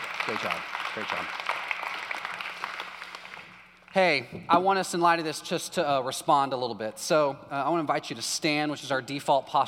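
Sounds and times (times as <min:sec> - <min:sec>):
audience applause: 0:00.0 - 0:03.6
speech: 0:00.2 - 0:01.6, 0:03.9 - 0:09.6.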